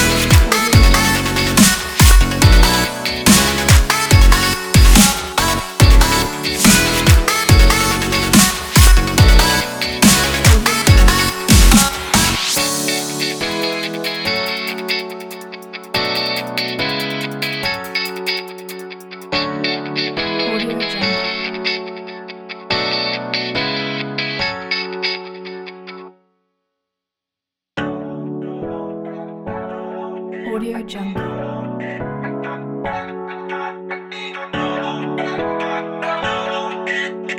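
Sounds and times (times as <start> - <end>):
summer future bass pop funk music: 0.0 - 18.8.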